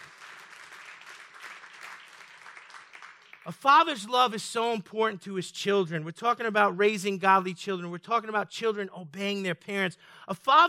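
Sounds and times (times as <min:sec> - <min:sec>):
crowd clapping: 0:00.0 - 0:03.6
speech: 0:03.4 - 0:10.6.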